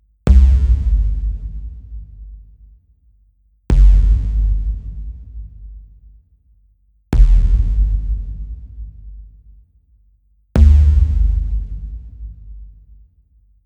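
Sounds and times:
bass: 0.0 - 2.8, 3.7 - 6.2, 7.1 - 9.6, 10.6 - 13.0.

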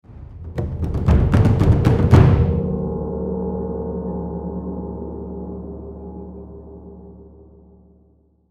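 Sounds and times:
drums in combat end tag: 0.0 - 3.8.

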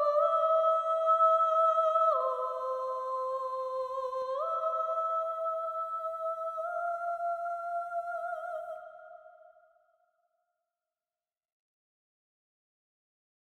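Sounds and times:
solo singer in a soundtrack: 0.0 - 9.4.

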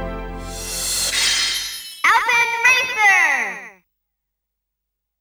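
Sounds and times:
voice calling the game title: 1.1 - 3.8.

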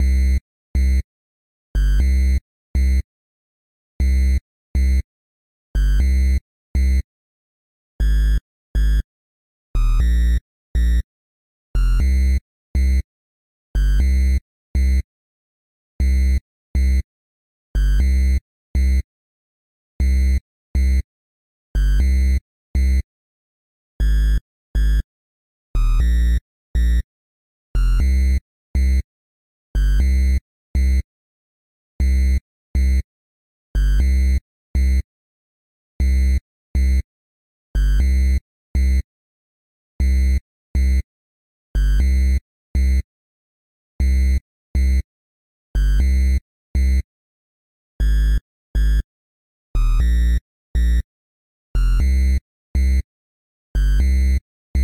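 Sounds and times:
bass: 0.0 - 1.0, 1.8 - 3.0, 4.0 - 5.0, 5.8 - 7.0, 8.0 - 9.0, 9.8 - 11.0, 11.7 - 13.0, 13.8 - 15.0, 16.0 - 17.0, 17.8 - 19.0, 20.0 - 21.0, 21.8 - 23.0, 24.0 - 25.0, 25.8 - 27.1, 27.8 - 29.0, 29.8 - 31.0, 32.0 - 33.0, 33.8 - 35.0, 36.0 - 37.0, 37.8 - 39.0, 40.0 - 41.0, 41.8 - 43.0, 44.0 - 45.0, 45.8 - 47.0, 48.0 - 49.0, 49.8 - 51.1, 51.8 - 53.0, 53.8 - 54.8.

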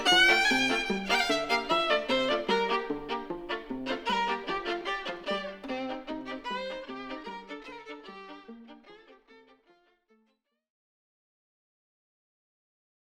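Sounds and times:
violin: 0.0 - 10.4.

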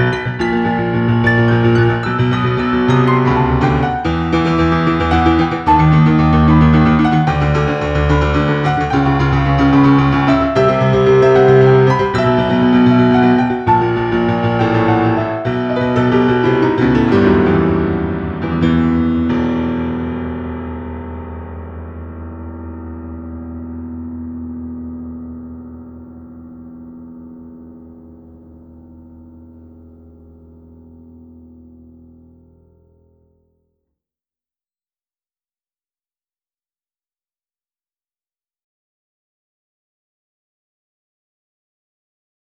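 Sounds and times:
solo piano: 0.0 - 33.3.

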